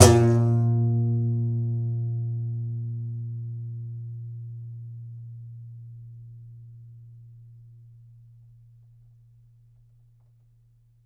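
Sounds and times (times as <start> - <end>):
contrabass balalaika plucked strings: 0.0 - 7.0.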